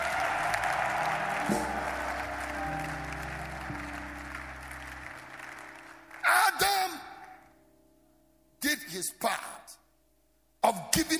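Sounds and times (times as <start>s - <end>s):
large crowd clapping and shouting: 0.0s - 7.5s
sustained low musical tone: 0.0s - 8.6s
speech: 1.5s - 1.8s.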